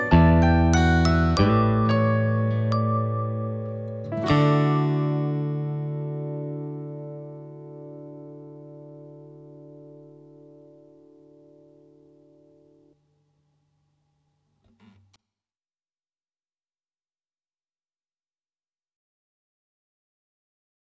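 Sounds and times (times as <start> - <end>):
instrumental music: 0.0 - 12.7.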